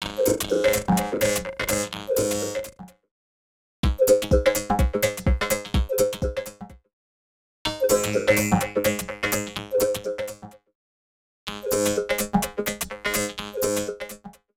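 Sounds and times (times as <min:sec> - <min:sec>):
electro music at 126 BPM: 0:00.0 - 0:02.8, 0:03.8 - 0:06.8, 0:07.7 - 0:10.4, 0:11.5 - 0:14.2.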